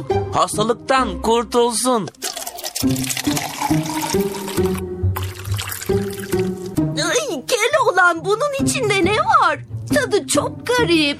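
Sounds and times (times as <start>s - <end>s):
speech: 0.0s - 4.7s, 8.0s - 11.1s
liquid poured and stirred into water in a glass: 2.1s - 6.9s.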